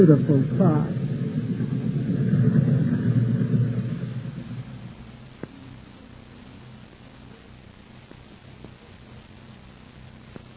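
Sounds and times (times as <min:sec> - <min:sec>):
speech: 0:00.0 - 0:01.0
train approaching and rumbling: 0:00.0 - 0:05.7.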